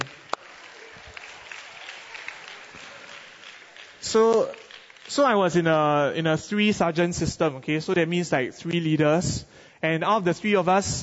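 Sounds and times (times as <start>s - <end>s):
audience clapping: 0.0s - 6.0s
speech: 4.1s - 11.0s.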